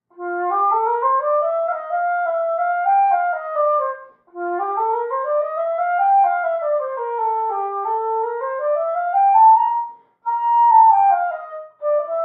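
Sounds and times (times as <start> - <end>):
wind instrument: 0.1 - 12.2.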